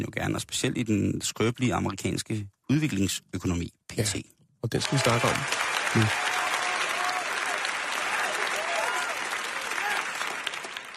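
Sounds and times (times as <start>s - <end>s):
speech: 0.0s - 6.3s
crowd applause: 4.8s - 10.9s.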